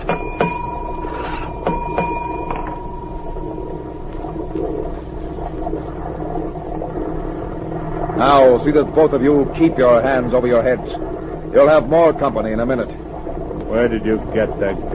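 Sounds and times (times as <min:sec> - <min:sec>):
ship's engine room telegraph bell clanging: 0:00.0 - 0:04.1
speech: 0:08.2 - 0:13.0, 0:13.7 - 0:14.9.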